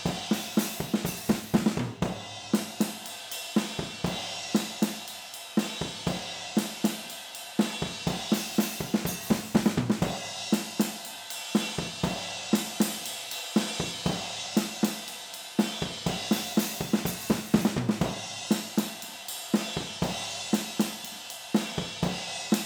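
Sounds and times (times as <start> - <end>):
drums recorded with overhead stereo microphones: 0.0 - 22.6.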